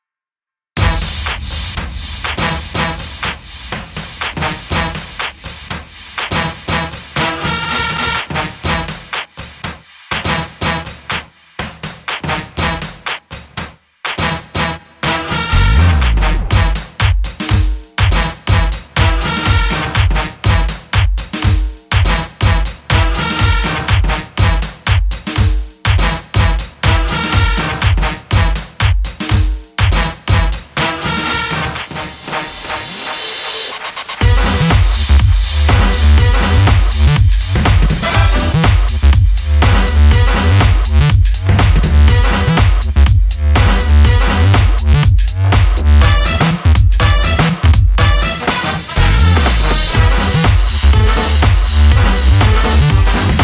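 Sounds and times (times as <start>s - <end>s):
swing music: 0.8s - 3.4s, 6.2s - 9.4s, 10.1s - 11.3s, 14.1s - 53.4s.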